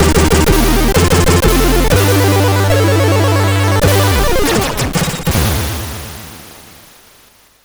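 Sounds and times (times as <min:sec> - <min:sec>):
intro on CSG8580R5 sound chip: 0:00.0 - 0:05.3.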